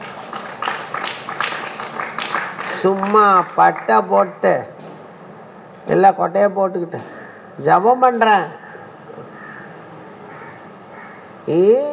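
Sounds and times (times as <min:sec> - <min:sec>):
hands clapping at a devotional talk: 0:00.0 - 0:04.1
speech: 0:02.8 - 0:04.7, 0:05.9 - 0:08.6, 0:11.5 - 0:11.9.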